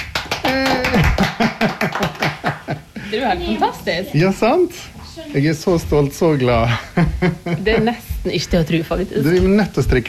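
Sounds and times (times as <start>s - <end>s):
people clapping to celebrate a friend finishing a knitted sweater: 0.0s - 2.8s
speech: 0.5s - 2.3s, 3.1s - 10.0s
laughter: 0.5s - 3.2s, 6.6s - 8.2s.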